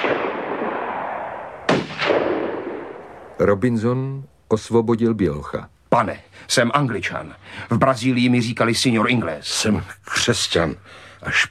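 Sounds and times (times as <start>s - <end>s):
gunfire at a boat: 0.0s - 3.4s
speech: 3.4s - 11.4s.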